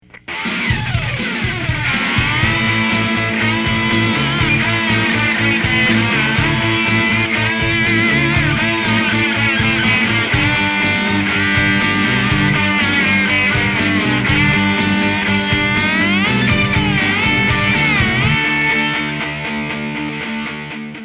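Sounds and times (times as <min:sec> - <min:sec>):
metal music: 0:00.0 - 0:21.0.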